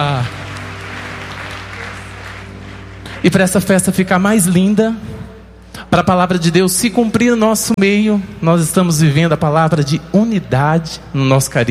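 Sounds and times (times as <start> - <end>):
audience applause at the Festa das Tendas religious festival: 0.0 - 3.7
speech: 3.2 - 5.2, 5.9 - 11.6.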